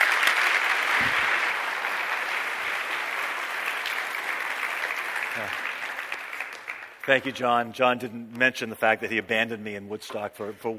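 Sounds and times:
audience applause welcoming a speaker at Mission Point: 0.0 - 7.2
speech: 7.1 - 10.7.

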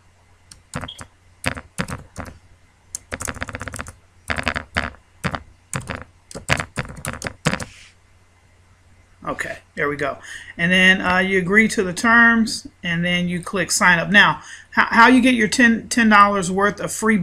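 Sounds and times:
password typed on a computer keyboard: 0.5 - 2.4, 3.0 - 7.7
speech: 9.3 - 17.2.

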